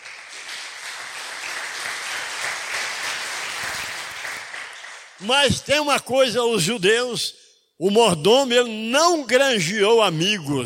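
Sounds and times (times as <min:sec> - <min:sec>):
audience applause: 0:00.0 - 0:05.3
speech: 0:05.2 - 0:10.6.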